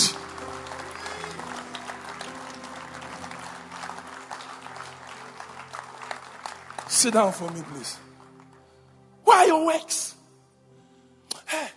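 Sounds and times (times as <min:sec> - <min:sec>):
audience applause: 0:00.0 - 0:08.6
speech: 0:06.9 - 0:08.1, 0:09.5 - 0:10.1.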